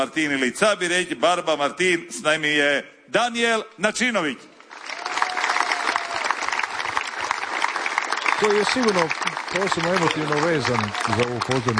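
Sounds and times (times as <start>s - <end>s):
speech: 0.0s - 4.5s, 8.4s - 11.7s
audience applause welcoming a performer onto a festival stage: 4.6s - 11.7s.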